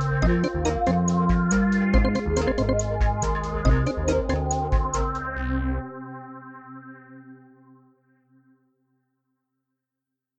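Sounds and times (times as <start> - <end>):
synth: 0.0 - 8.1.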